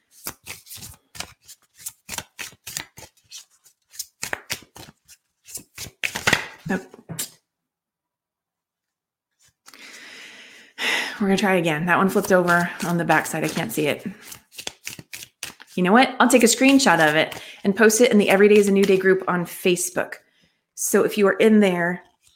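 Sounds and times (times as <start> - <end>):
tarot card drawn with a faint rustle: 0.0 - 7.3, 12.0 - 15.8, 16.4 - 19.1
tarot cards shuffled: 0.0 - 7.4, 9.3 - 10.0, 12.0 - 19.2, 22.0 - 22.3
speech: 6.7 - 7.0, 11.2 - 14.2, 15.8 - 20.2, 20.8 - 22.1.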